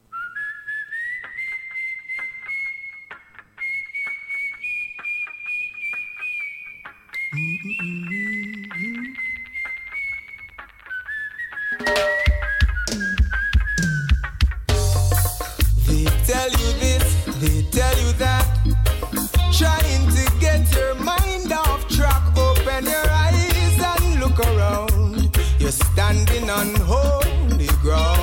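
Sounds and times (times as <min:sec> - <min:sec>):
whistled melody: 0:00.0 - 0:14.5, 0:15.8 - 0:28.2
speech: 0:07.3 - 0:08.1
full band with heavy drums: 0:11.8 - 0:28.2.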